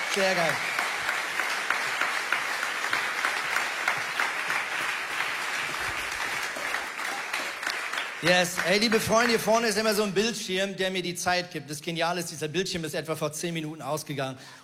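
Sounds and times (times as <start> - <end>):
audience applause: 0.0 - 10.0
speech: 0.2 - 0.8, 8.2 - 14.6.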